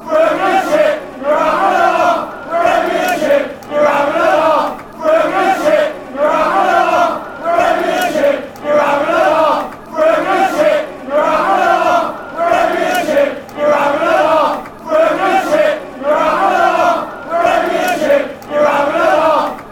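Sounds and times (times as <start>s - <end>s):
football fans chanting: 0.0s - 19.7s.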